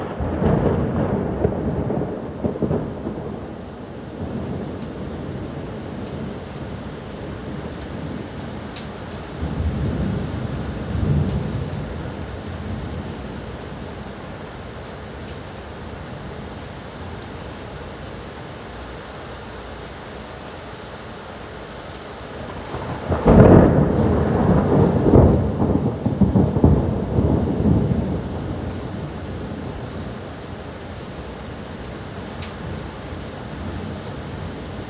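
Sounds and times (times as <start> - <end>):
thunder: 0.0 - 3.6, 9.4 - 13.0, 22.5 - 29.8.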